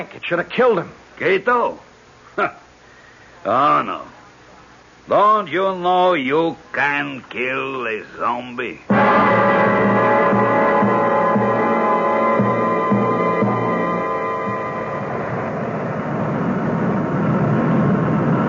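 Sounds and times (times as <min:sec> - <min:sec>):
speech: 0:00.0 - 0:02.6, 0:03.4 - 0:04.1, 0:05.1 - 0:09.4
airplane engine drone coming in to land: 0:08.9 - 0:18.4.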